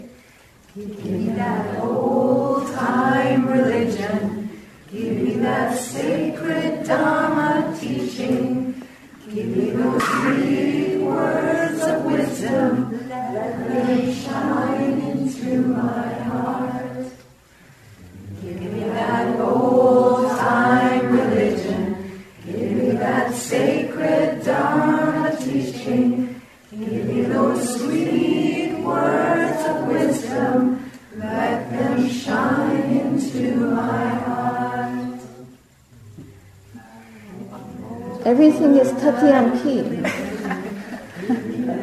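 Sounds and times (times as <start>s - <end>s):
gospel chant: 0.2s - 41.8s
laughter: 39.9s - 41.8s.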